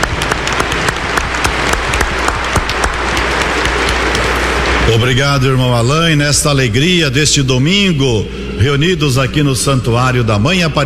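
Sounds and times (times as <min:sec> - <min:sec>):
warm round of applause: 0:00.0 - 0:04.7
speech: 0:04.9 - 0:10.8.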